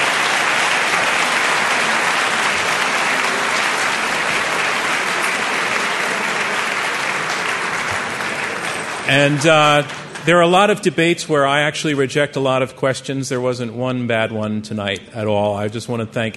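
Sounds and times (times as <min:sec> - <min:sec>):
audience applause: 0:00.0 - 0:11.2
speech: 0:09.1 - 0:16.3.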